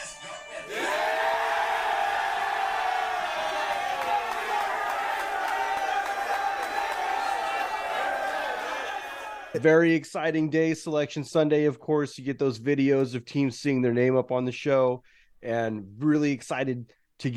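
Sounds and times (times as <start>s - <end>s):
team cheering and whooping: 0.6s - 9.6s
team clapping: 2.0s - 9.6s
speech: 9.5s - 17.3s.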